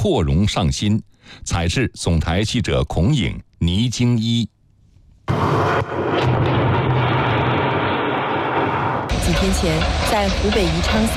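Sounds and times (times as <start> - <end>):
speech: 0.0 - 4.5, 5.3 - 6.8, 9.3 - 11.1
construction site blasting explosion at the Three Gorges new channel: 5.3 - 11.1.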